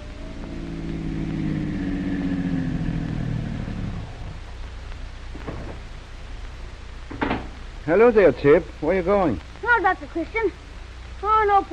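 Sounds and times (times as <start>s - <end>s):
car pulling up to the curb: 0.0s - 5.9s
speech: 7.9s - 10.6s, 11.2s - 11.7s.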